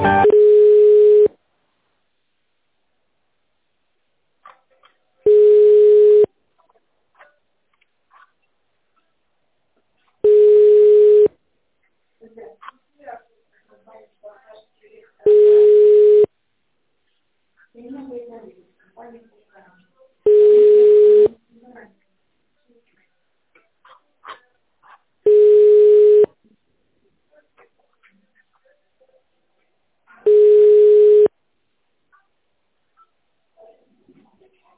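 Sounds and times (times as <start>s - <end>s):
telephone ringback tone: 0.2s - 1.3s, 5.3s - 6.3s, 10.3s - 11.3s, 15.3s - 16.3s, 20.3s - 21.3s, 25.3s - 26.3s, 30.3s - 31.3s.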